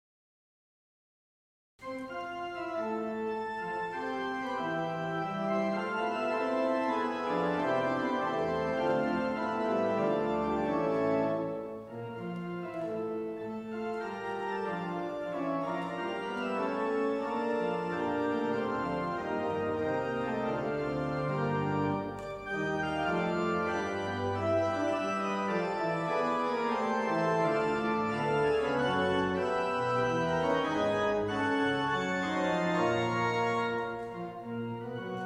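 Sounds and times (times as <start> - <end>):
organ fugue: 1.8 - 35.2.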